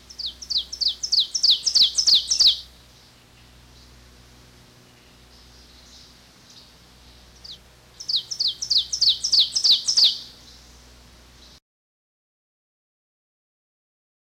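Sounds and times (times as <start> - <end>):
ovenbird singing: 0.0 - 4.0, 4.9 - 10.8.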